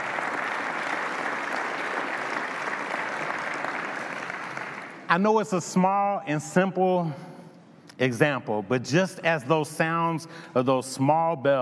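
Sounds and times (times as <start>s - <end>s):
audience applause for children: 0.0s - 5.1s
speech: 5.1s - 7.3s, 8.0s - 11.5s.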